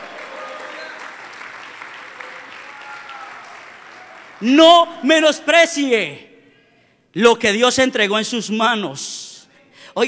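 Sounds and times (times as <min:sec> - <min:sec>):
audience applause: 0:00.0 - 0:04.4
speech: 0:04.4 - 0:06.3, 0:07.1 - 0:10.0.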